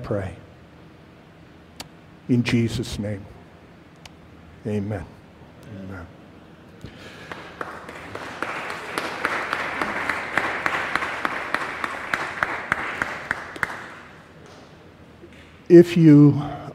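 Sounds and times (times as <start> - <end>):
speech: 0.0 - 0.4, 2.3 - 3.3, 4.6 - 6.2, 15.7 - 16.6
audience applause during worship: 6.9 - 14.6.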